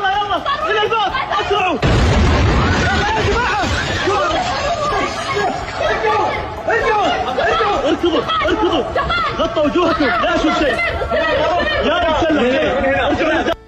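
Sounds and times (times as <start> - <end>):
agitated crowd voices: 0.0 - 13.6
missile explosion at airport: 1.8 - 5.8
laughter: 2.4 - 13.6.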